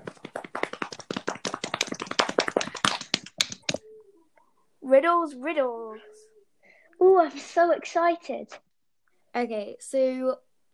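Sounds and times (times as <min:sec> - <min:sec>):
small group of people clapping hands: 0:00.0 - 0:03.8
speech: 0:04.9 - 0:06.2, 0:07.0 - 0:08.6, 0:09.3 - 0:10.5.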